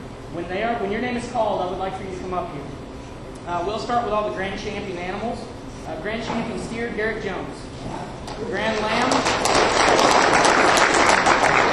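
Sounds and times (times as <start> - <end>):
speech: 0.3 - 2.8, 3.4 - 9.7
applause at a youth livestock show awards ceremony: 8.8 - 11.7.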